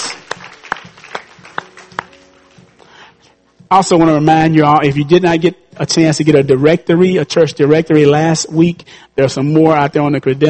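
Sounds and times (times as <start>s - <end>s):
audience clapping in praise: 0.0s - 2.9s
speech: 3.7s - 10.4s.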